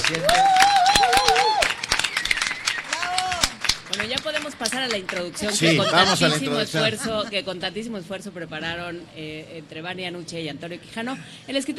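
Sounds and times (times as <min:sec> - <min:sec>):
applause on set: 0:00.0 - 0:05.8
speech: 0:00.1 - 0:00.6, 0:04.0 - 0:11.7
laughter: 0:05.6 - 0:07.3.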